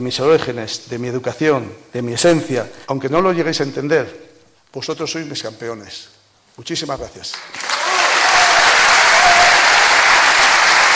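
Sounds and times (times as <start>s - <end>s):
speech: 0.0s - 7.7s
thunderous applause and ovation: 7.6s - 10.9s.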